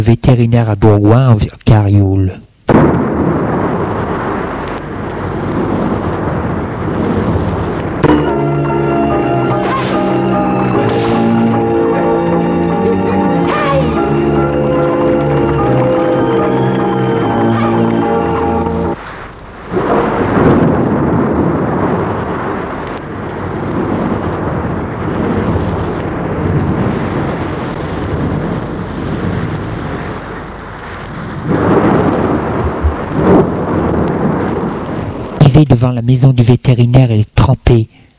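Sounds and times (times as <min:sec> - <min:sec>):
speech: 0:00.0 - 0:03.0, 0:35.9 - 0:38.0
night thunderstorm rumbling: 0:02.7 - 0:35.5
sustained tonal music: 0:08.0 - 0:19.0.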